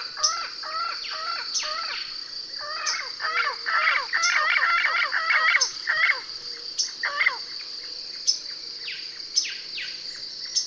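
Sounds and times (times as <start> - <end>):
harsh buzzy bird calls: 0.0 - 7.4
constant high insect drone: 0.0 - 10.6.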